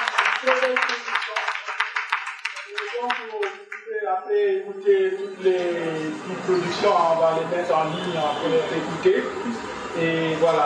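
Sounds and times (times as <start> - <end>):
audience clapping: 0.0 - 3.9
speech: 4.2 - 10.6.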